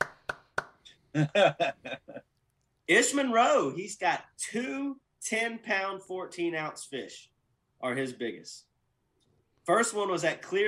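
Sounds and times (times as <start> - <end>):
round of applause: 0.0 - 0.8
laughter: 1.2 - 2.2
speech: 1.2 - 2.3, 2.9 - 8.7, 9.6 - 10.6.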